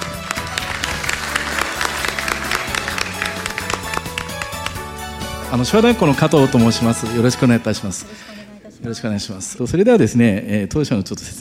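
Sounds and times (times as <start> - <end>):
audience applause welcoming a speaker: 0.0 - 5.4
speech: 5.5 - 11.3.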